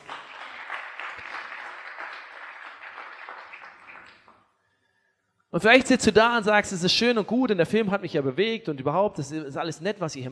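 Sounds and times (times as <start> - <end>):
audience applause: 0.0 - 4.4
speech: 5.5 - 10.3.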